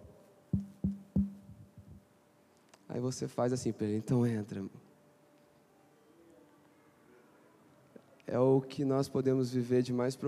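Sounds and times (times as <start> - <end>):
firm knocking on a door: 0.6 - 1.9
soft quick taps on a door: 0.6 - 2.0
speech: 3.0 - 4.8, 8.4 - 10.2.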